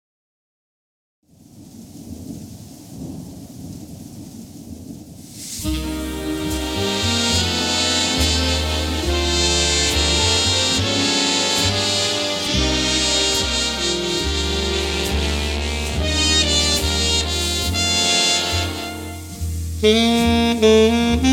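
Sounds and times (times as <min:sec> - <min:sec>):
big band: 0:05.6 - 0:21.3.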